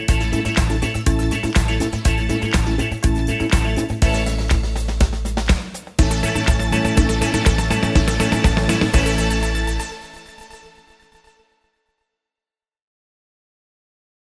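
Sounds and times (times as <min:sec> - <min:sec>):
1970s disco music: 0:00.0 - 0:10.8.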